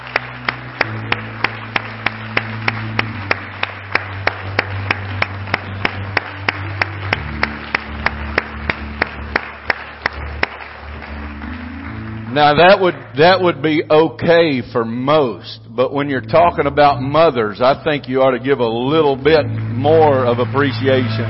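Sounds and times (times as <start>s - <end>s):
audience hand clapping: 0.0s - 14.2s, 17.8s - 21.2s
speech: 12.4s - 21.2s.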